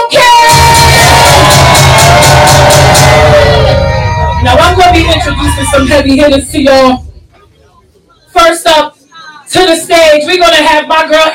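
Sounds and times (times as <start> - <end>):
crowd cheering and whooping at a live music showcase: 0.2 - 6.2
speech: 6.0 - 7.1, 9.7 - 11.3.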